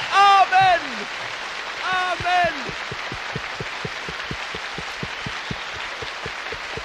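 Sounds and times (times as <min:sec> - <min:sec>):
congregation applause at a church service: 0:00.0 - 0:06.8
steady evenly spaced low thump: 0:02.1 - 0:06.8.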